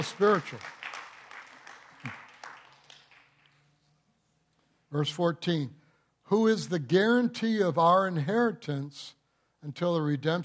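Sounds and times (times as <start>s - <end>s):
speech: 0.0s - 0.8s, 4.9s - 10.4s
audience applause: 0.0s - 3.6s.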